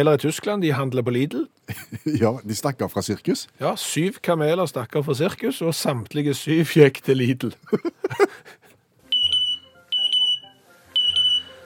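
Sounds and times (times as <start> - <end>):
speech: 0.0 - 8.6
parrot imitating a smoke alarm: 9.2 - 11.6.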